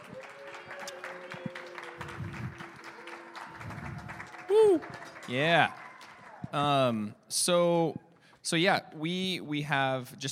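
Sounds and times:
audience clapping at a church gathering: 0:00.0 - 0:06.8
speech: 0:04.5 - 0:05.8, 0:06.5 - 0:10.2.

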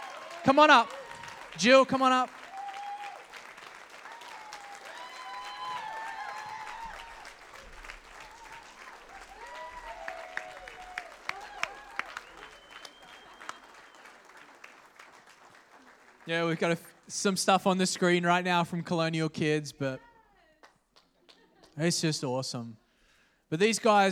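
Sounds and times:
church congregation cheers and whoops: 0:00.0 - 0:14.6
church congregation clapping for new kids pastors: 0:00.0 - 0:18.5, 0:20.6 - 0:21.9
speech: 0:00.4 - 0:02.4, 0:16.3 - 0:20.1, 0:21.8 - 0:22.8, 0:23.5 - 0:24.1.

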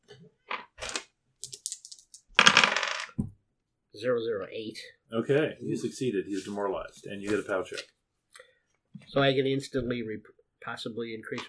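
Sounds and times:
percentile dice rolling: 0:00.5 - 0:03.3
speech: 0:04.0 - 0:08.0, 0:09.1 - 0:11.4.

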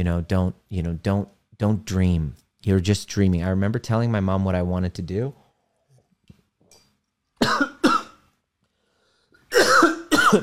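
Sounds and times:
speech: 0:00.0 - 0:05.4
person coughing after choking on water: 0:07.4 - 0:08.2, 0:09.5 - 0:10.4.

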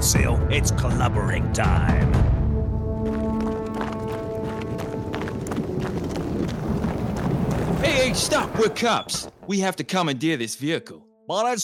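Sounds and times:
speech: 0:00.0 - 0:02.4, 0:07.8 - 0:11.6
running footsteps of a fleeing man chased by police: 0:02.7 - 0:09.9.

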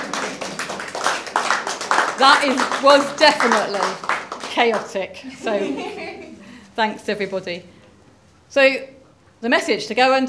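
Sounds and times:
church congregation clapping during an Easter service: 0:00.0 - 0:05.0
speech: 0:02.2 - 0:06.2, 0:06.8 - 0:07.7, 0:08.5 - 0:10.2
laughter: 0:05.2 - 0:06.6.

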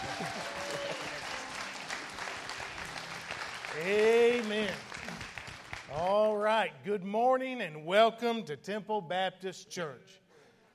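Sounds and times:
church congregation at Temple Baptist Church applauding to welcome a preacher: 0:00.0 - 0:06.5
speech: 0:03.8 - 0:04.9, 0:06.0 - 0:10.2.

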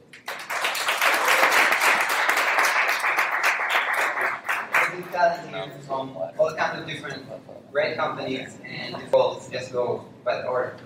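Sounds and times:
audience applause for the panelists: 0:00.2 - 0:05.1
speech: 0:05.2 - 0:10.8.

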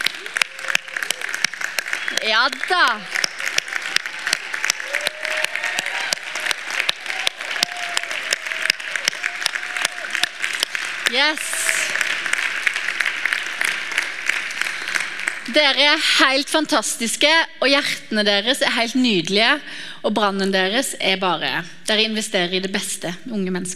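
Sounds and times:
audience applause: 0:00.0 - 0:15.6
speech: 0:02.1 - 0:03.2, 0:11.1 - 0:11.6, 0:15.5 - 0:23.7.

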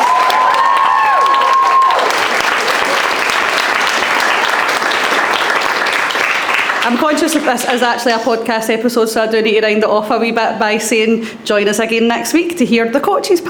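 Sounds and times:
audience cheering: 0:00.0 - 0:07.0
audience applause: 0:00.0 - 0:07.9
speech: 0:06.9 - 0:13.4.

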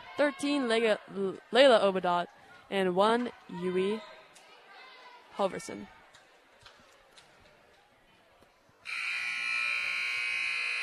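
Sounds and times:
speech: 0:00.2 - 0:04.2, 0:05.4 - 0:06.0
game buzzer sounding: 0:08.9 - 0:10.8.

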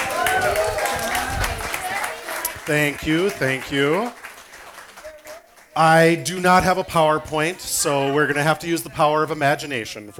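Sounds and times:
audience applause: 0:00.0 - 0:08.5
speech: 0:02.7 - 0:04.2, 0:05.8 - 0:10.1.

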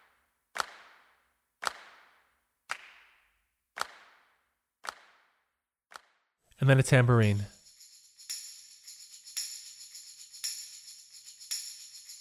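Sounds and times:
hand claps percussion track: 0:00.6 - 0:06.2, 0:09.4 - 0:12.1
speech: 0:06.6 - 0:07.6.

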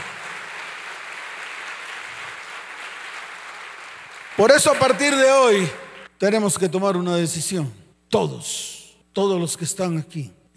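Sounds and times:
audience applause: 0:00.0 - 0:06.0
speech: 0:04.4 - 0:10.5.

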